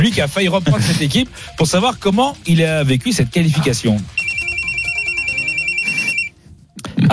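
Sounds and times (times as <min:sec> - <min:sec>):
speech: 0:00.0 - 0:04.2
telephone ringback tone on an outgoing call: 0:04.1 - 0:06.4.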